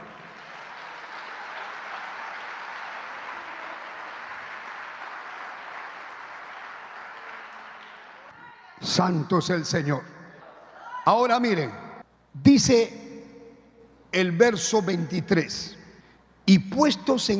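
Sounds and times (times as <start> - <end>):
audience clapping: 0.0 - 8.4
speech: 8.8 - 10.1, 11.1 - 11.8, 12.4 - 13.0, 14.1 - 15.8, 16.5 - 17.3.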